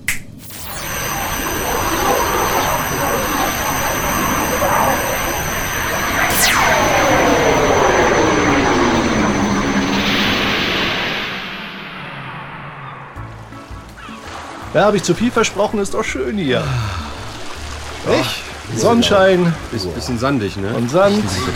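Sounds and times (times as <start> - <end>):
sci-fi teleporter beaming effect: 0.4 - 13.9
bright tone sweeping downward in pitch: 0.4 - 14.2
speech: 14.8 - 17.1, 18.0 - 21.5.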